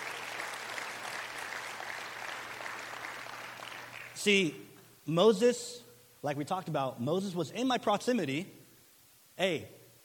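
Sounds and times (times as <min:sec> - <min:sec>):
audience applause: 0:00.0 - 0:04.2
speech: 0:04.2 - 0:08.6, 0:09.4 - 0:09.8.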